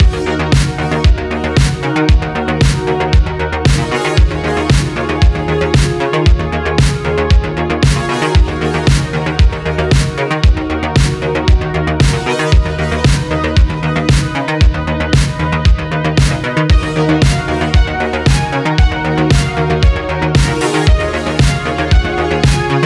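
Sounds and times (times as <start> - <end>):
boss defence intro music: 0.0 - 22.8.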